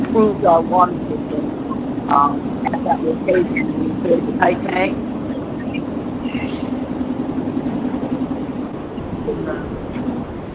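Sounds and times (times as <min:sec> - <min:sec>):
car engine rumble and road noise through a phone connection: 0:00.0 - 0:10.5
speech: 0:00.2 - 0:01.4, 0:02.1 - 0:05.1.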